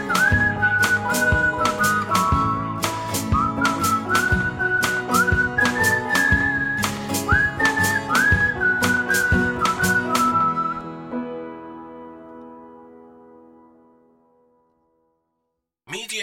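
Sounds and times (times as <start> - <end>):
person whistling: 0.0 - 11.0.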